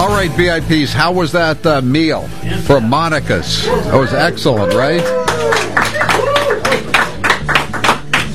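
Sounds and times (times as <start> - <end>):
speech: 0.2 - 5.8
small group clapping: 4.5 - 8.3.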